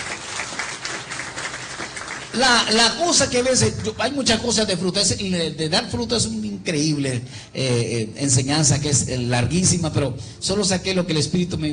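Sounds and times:
congregation applauding during a church sermon: 0:00.0 - 0:04.4
speech: 0:02.4 - 0:11.7.

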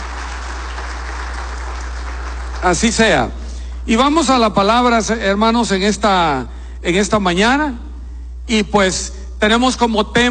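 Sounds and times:
audience applause: 0:00.0 - 0:03.2
speech: 0:02.6 - 0:07.9, 0:08.5 - 0:10.2.

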